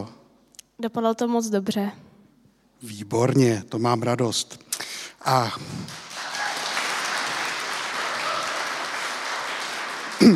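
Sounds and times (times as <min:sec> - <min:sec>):
speech: 0:00.8 - 0:02.1, 0:02.8 - 0:06.0
audience applause for a student's exam success: 0:05.2 - 0:10.3.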